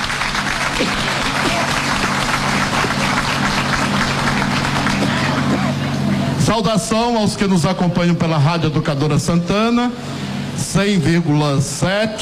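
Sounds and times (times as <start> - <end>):
audience applauding: 0.0 - 5.6
speech: 6.6 - 12.2.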